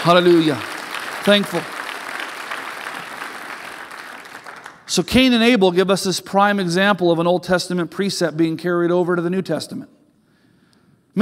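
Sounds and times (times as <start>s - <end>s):
speech: 0.0s - 1.7s, 4.9s - 10.0s
audience applause: 0.0s - 4.9s.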